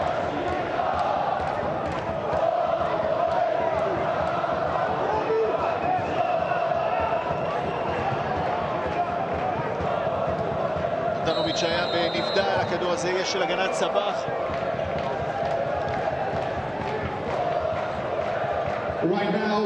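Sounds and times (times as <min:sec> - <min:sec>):
stadium crowd cheering: 0:00.0 - 0:19.6
speech: 0:11.6 - 0:14.5.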